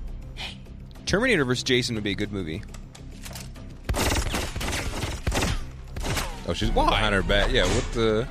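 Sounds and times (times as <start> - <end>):
speech: 1.1 - 2.8, 6.5 - 8.2
gunfire from a movie action scene: 3.9 - 6.5.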